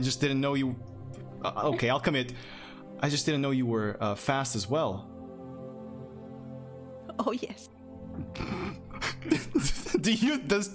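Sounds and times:
speech: 0:00.0 - 0:05.1, 0:07.2 - 0:10.7
coughing: 0:08.0 - 0:10.2
laughter: 0:08.2 - 0:10.3.

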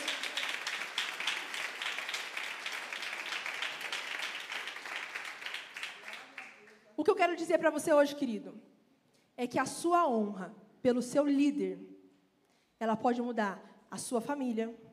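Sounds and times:
audience applauding: 0:00.0 - 0:06.9
speech: 0:07.0 - 0:08.7, 0:09.4 - 0:12.0, 0:12.8 - 0:14.9.

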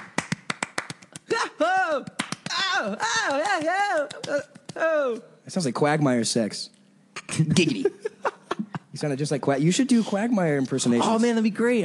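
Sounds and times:
one person clapping to mimic applause: 0:00.0 - 0:01.3, 0:02.0 - 0:04.8
speech: 0:01.9 - 0:02.2, 0:02.8 - 0:08.1, 0:09.0 - 0:11.8.

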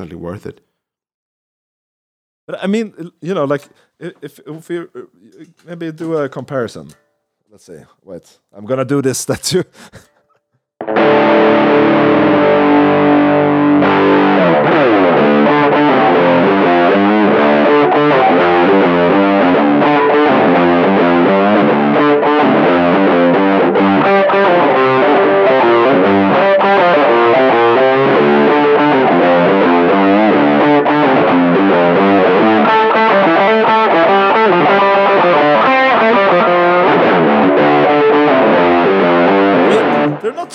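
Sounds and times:
speech: 0:00.0 - 0:00.7, 0:02.5 - 0:10.1
chunky heavily distorted rock guitar riffs: 0:10.8 - 0:40.5.

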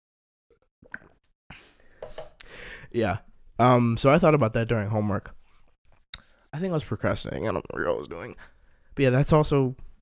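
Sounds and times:
person sipping water: 0:00.5 - 0:02.6
speech: 0:02.9 - 0:05.4, 0:06.5 - 0:09.9.

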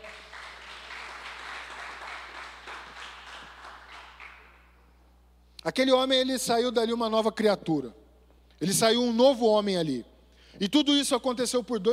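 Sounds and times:
audience applauding: 0:00.0 - 0:04.6
speech: 0:05.6 - 0:08.0, 0:08.6 - 0:11.9.

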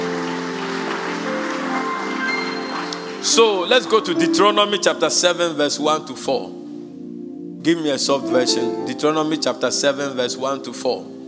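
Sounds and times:
audience clapping: 0:00.0 - 0:04.2
speech: 0:03.2 - 0:06.6, 0:07.6 - 0:11.2.

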